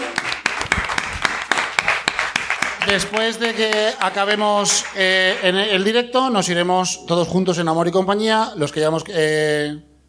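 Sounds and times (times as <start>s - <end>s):
audience applause: 0.0s - 5.8s
speech: 2.9s - 9.9s.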